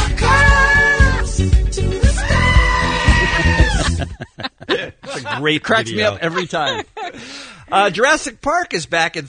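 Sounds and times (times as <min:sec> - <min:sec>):
screaming goats edited into a pop song: 0:00.2 - 0:04.2
laughter: 0:02.7 - 0:08.2
speech: 0:05.4 - 0:07.0, 0:07.7 - 0:09.2.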